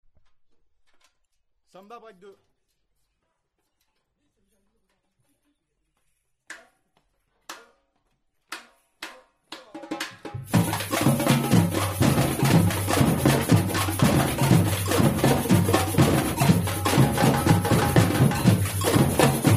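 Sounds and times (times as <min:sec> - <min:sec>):
samba drum break: 0:09.0 - 0:19.5.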